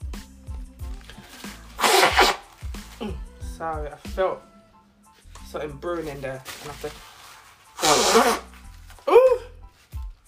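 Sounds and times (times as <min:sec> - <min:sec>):
nose blowing: 0:01.1 - 0:03.3, 0:07.8 - 0:09.3
speech: 0:03.0 - 0:04.5, 0:05.5 - 0:07.0, 0:08.2 - 0:08.4.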